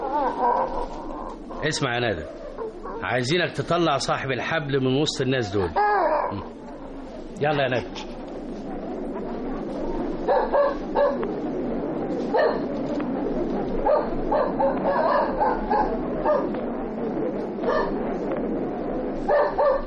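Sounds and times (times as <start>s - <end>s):
low steady noise: 0.0s - 19.8s
speech: 1.6s - 2.4s, 3.0s - 6.6s, 7.4s - 8.0s
police tracking dog barking and yipping: 2.2s - 3.1s, 10.3s - 11.2s, 12.3s - 12.7s, 13.8s - 16.6s, 17.6s - 18.0s, 19.3s - 19.8s.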